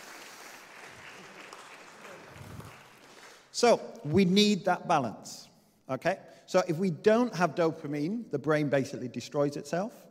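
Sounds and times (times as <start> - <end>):
audience applause: 0.0 - 3.5
speech: 3.6 - 10.1.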